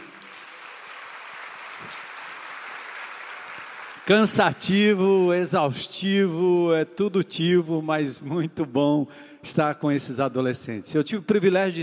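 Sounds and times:
audience applause: 0:00.0 - 0:04.3
speech: 0:04.1 - 0:11.8.

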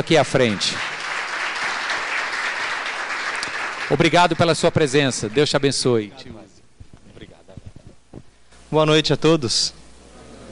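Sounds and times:
speech: 0:00.0 - 0:01.0, 0:03.9 - 0:06.5, 0:08.7 - 0:09.8
audience applause: 0:00.0 - 0:05.9.

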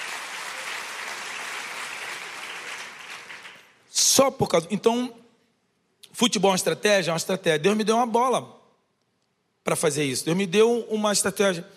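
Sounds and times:
audience applause: 0:00.0 - 0:03.8
speech: 0:04.2 - 0:05.2, 0:06.2 - 0:08.6, 0:09.6 - 0:11.7.

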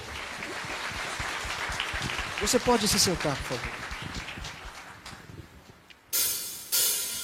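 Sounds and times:
audience applauding: 0:00.0 - 0:05.4
speech: 0:02.4 - 0:04.1.

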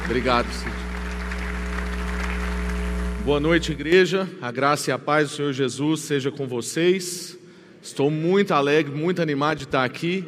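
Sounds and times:
audience applauding: 0:00.0 - 0:03.5
speech: 0:00.1 - 0:00.8, 0:03.2 - 0:10.2.

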